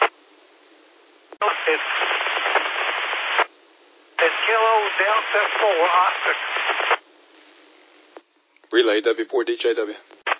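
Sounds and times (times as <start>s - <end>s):
narrow-band radio static: 1.3s - 3.5s, 4.2s - 7.0s
speech: 1.6s - 2.2s, 4.8s - 7.0s, 8.7s - 10.2s.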